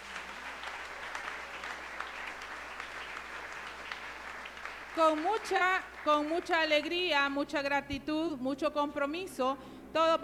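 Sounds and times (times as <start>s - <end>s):
audience applause: 0.0s - 6.6s
speech: 5.0s - 10.2s.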